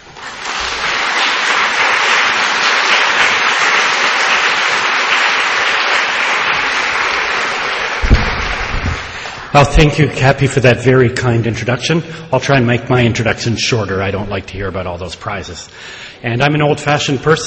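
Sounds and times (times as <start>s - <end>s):
audience applause welcoming a speaker at an evening lecture on palliative care: 0.0s - 9.9s
speech: 9.5s - 17.4s.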